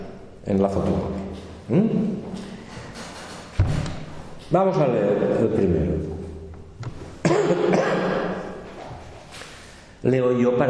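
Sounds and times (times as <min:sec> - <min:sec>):
speech: 0:00.4 - 0:02.4, 0:04.5 - 0:06.1, 0:07.4 - 0:08.4, 0:10.0 - 0:10.6
person clearing throat: 0:07.2 - 0:08.6.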